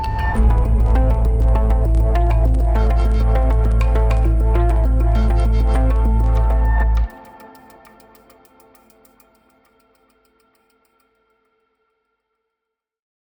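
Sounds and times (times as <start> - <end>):
dramatic creeping suspense music: 0.0 - 9.2.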